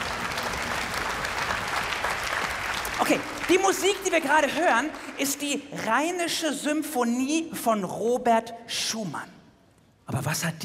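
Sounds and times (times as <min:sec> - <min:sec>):
audience applause: 0:00.0 - 0:05.5
speech: 0:03.0 - 0:09.4, 0:10.1 - 0:10.6.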